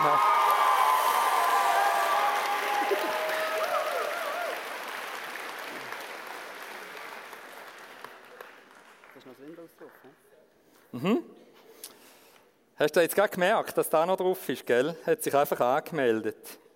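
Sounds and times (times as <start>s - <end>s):
audience applause: 0.0s - 10.1s
speech: 11.0s - 11.3s, 12.8s - 16.6s.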